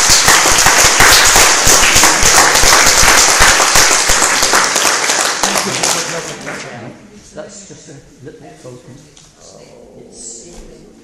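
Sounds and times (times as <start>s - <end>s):
audience applause: 0.0s - 6.7s
speech: 7.9s - 10.2s.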